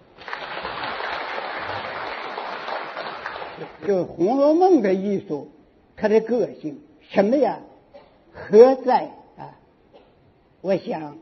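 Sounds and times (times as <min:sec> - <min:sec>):
audience applause: 0:00.0 - 0:03.8
speech: 0:03.9 - 0:07.7, 0:08.4 - 0:09.6, 0:10.6 - 0:11.2.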